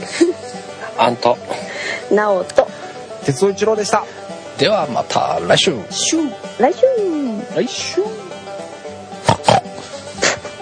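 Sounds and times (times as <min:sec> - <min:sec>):
speech: 0:01.0 - 0:02.6, 0:03.2 - 0:08.3
pig grunting: 0:09.2 - 0:10.4.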